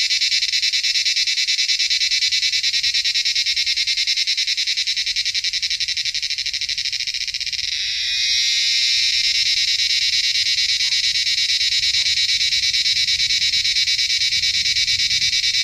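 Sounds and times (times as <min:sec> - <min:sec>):
cicada: 0:00.0 - 0:15.6.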